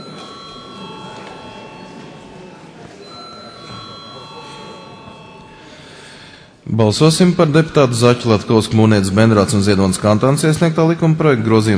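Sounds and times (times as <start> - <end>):
parliament voting call bell ringing: 0.0 - 6.4
low murmur of voices: 0.0 - 11.7
speech: 6.7 - 11.7.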